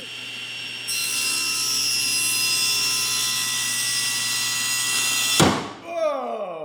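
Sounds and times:
table saw whining: 0:00.0 - 0:05.5
blade hitting the hot dog and stopping: 0:05.4 - 0:05.8.

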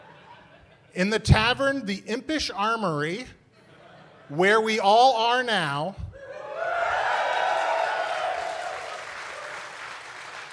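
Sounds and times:
speech: 0:01.0 - 0:03.4, 0:04.3 - 0:06.0
crowd applause in a tavern: 0:06.4 - 0:10.5.

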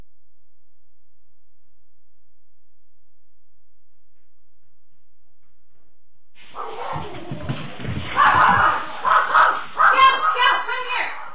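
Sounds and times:
low rumble: 0:03.6 - 0:10.7
dog barking: 0:06.5 - 0:07.2, 0:08.1 - 0:11.3.

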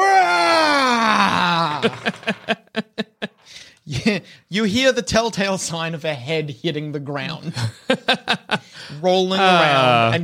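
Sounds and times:
man bellowing a scream: 0:00.0 - 0:02.1
laughter: 0:01.3 - 0:03.5, 0:07.4 - 0:09.8
speech: 0:01.8 - 0:02.6, 0:04.0 - 0:10.2
short rhythmic gasping bursts: 0:03.4 - 0:04.5, 0:08.6 - 0:09.0.

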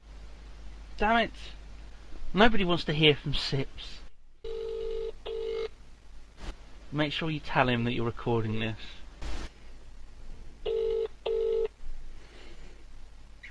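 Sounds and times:
speech: 0:01.0 - 0:01.6, 0:02.3 - 0:04.0, 0:06.9 - 0:09.0
telephone call ringing out: 0:04.4 - 0:05.7, 0:10.6 - 0:11.7.

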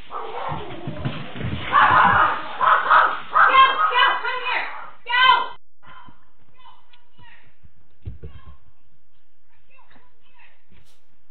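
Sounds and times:
dog barking while chasing a bear: 0:00.1 - 0:00.7, 0:01.7 - 0:05.0.

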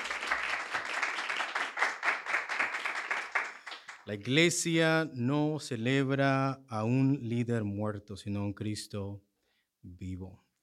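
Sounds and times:
audience clapping hands: 0:00.0 - 0:04.4
speech: 0:04.1 - 0:10.4.

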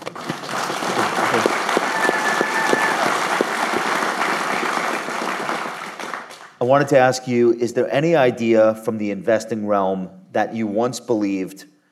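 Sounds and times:
round of applause: 0:00.0 - 0:06.6
speech: 0:06.7 - 0:11.7.

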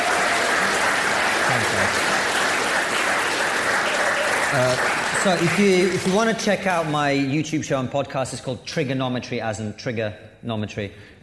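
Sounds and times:
audience applauding: 0:00.0 - 0:07.1
speech: 0:04.5 - 0:11.2.

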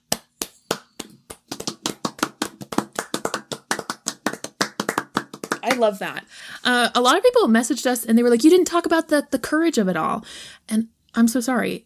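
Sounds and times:
audience applause: 0:01.5 - 0:05.9
speech: 0:05.7 - 0:11.8.

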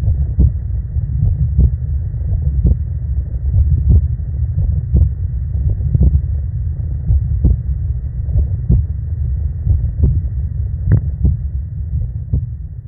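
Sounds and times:
human heartbeat recording: 0:00.0 - 0:02.9, 0:03.5 - 0:06.3, 0:07.0 - 0:09.0, 0:09.6 - 0:10.3, 0:10.9 - 0:12.6.

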